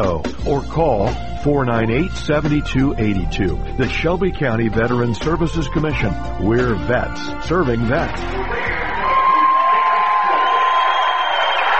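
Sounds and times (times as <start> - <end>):
speech: 0.0 - 8.8
Rucci Raiders home cheering section cheering on its feet: 8.0 - 11.7.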